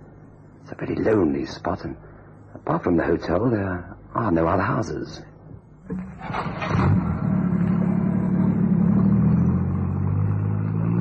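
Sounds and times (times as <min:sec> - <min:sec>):
speech: 0:00.7 - 0:02.1, 0:02.7 - 0:05.3, 0:05.9 - 0:07.0
car accelerating: 0:06.0 - 0:10.9.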